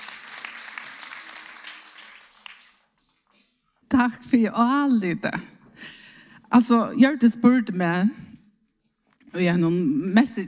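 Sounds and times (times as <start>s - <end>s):
audience applause: 0.0s - 3.1s
speech: 4.0s - 5.6s, 6.5s - 8.2s, 9.4s - 10.4s.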